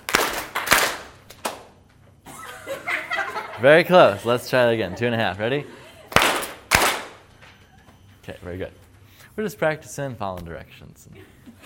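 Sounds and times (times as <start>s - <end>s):
group clapping in a loose rhythm: 0.0s - 1.8s, 6.1s - 7.3s
laughter: 2.3s - 6.2s, 11.1s - 11.6s
speech: 3.6s - 5.8s, 8.3s - 8.8s, 9.4s - 11.6s.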